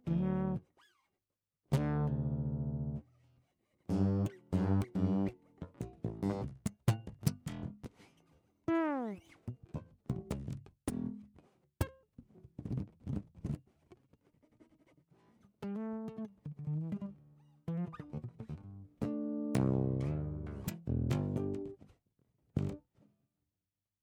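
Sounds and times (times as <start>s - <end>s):
fretless bass guitar with piezo pickup: 0.0s - 0.7s, 1.7s - 3.1s, 3.9s - 8.1s, 9.1s - 11.4s, 12.5s - 13.6s, 15.6s - 21.8s, 22.6s - 22.8s.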